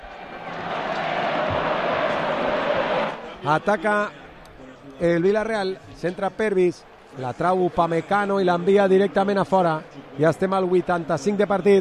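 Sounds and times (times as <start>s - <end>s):
football stadium crowd chanting at a Villarreal match: 0.0s - 3.4s
speech: 3.4s - 4.2s, 5.0s - 11.7s.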